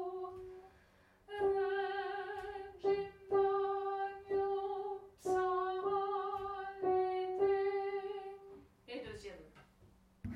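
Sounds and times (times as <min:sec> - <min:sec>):
alto singing: 0:01.3 - 0:08.6.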